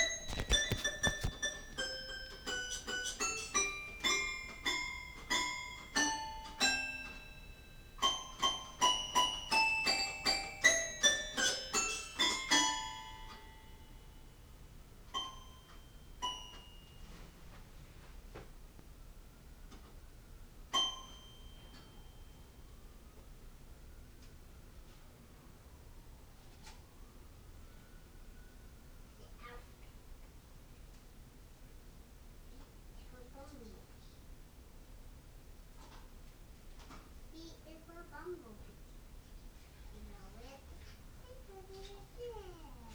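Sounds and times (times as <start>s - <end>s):
piano: 0.0s - 17.1s, 20.7s - 22.9s.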